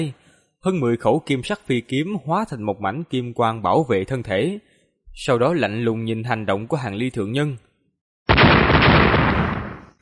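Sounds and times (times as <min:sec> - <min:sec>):
speech: 0:00.0 - 0:07.7
explosions: 0:08.3 - 0:09.9.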